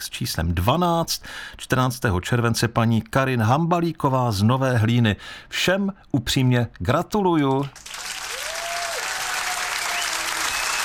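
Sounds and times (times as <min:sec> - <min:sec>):
speech: 0:00.0 - 0:07.9
crowd applause for the winners: 0:07.8 - 0:10.8.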